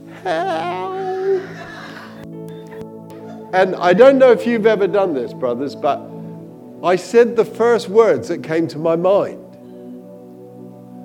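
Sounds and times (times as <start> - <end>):
man imitating a whimper: 0.0 - 2.2
speech: 0.2 - 1.7, 3.5 - 6.1, 6.8 - 9.4.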